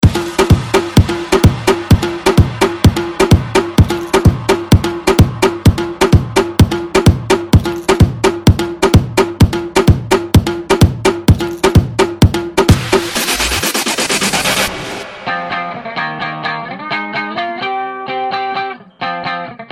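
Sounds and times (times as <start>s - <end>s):
party music: 0.0s - 17.6s.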